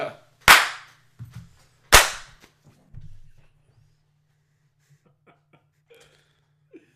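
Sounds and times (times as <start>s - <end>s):
hand claps: 0.4s - 1.0s, 1.9s - 2.5s.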